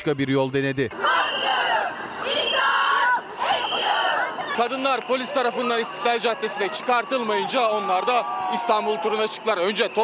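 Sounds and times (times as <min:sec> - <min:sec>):
speech: 0:00.0 - 0:01.3, 0:04.6 - 0:10.0
women shouting in the streets: 0:01.0 - 0:04.6.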